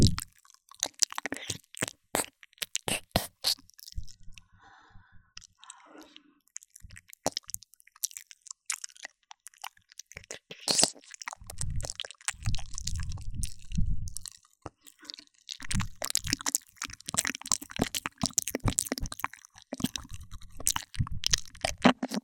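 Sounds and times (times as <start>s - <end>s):
ear licking in the right channel only: 0.0s - 4.1s, 8.3s - 13.7s, 14.6s - 22.2s.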